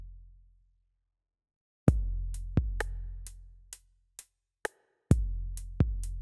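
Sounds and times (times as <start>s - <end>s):
drums and percussion: 1.9s - 3.8s, 4.6s - 6.2s.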